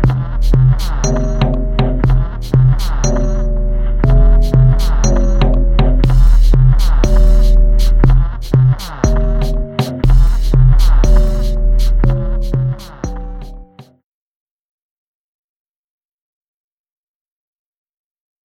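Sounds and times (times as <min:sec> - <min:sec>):
sample beat: 0:00.0 - 0:13.9.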